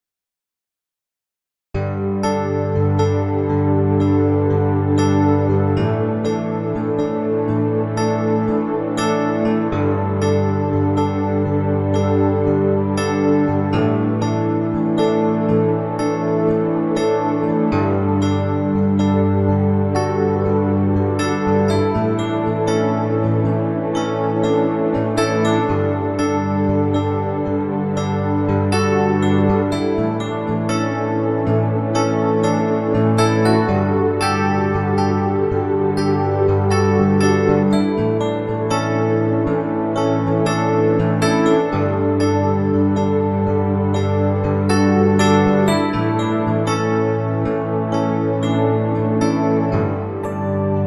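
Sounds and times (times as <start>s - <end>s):
NS2 piano: 1.8s - 50.8s.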